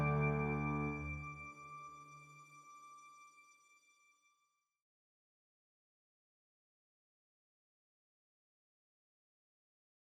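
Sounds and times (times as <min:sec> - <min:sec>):
full instrumental music: 0:00.0 - 0:03.0.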